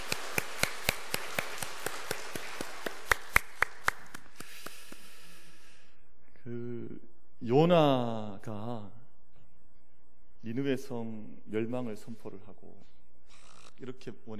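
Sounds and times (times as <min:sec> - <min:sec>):
audience applauding a choir: 0:00.0 - 0:05.1
speech: 0:07.5 - 0:08.6, 0:10.5 - 0:13.0, 0:13.8 - 0:14.3.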